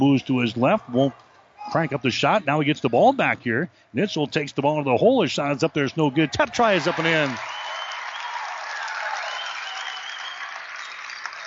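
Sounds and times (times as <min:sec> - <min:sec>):
speech: 0:00.0 - 0:07.5
crowd applause and cheering at basketball game: 0:06.4 - 0:11.4.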